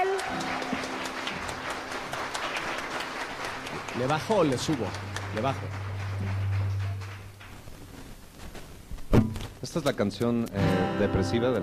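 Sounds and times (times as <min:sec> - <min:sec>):
audience applause: 0:00.0 - 0:08.0
speech: 0:04.0 - 0:06.4, 0:09.7 - 0:11.6.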